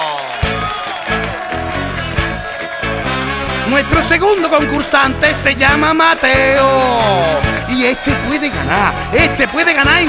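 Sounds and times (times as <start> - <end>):
audience applause: 0.0 - 10.0
speech: 3.7 - 10.0.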